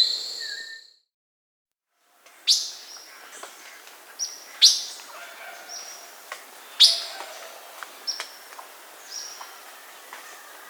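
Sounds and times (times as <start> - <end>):
Blue-black Grosbeak Cyanocompsa cyanoides in Peru: 2.4 - 10.6.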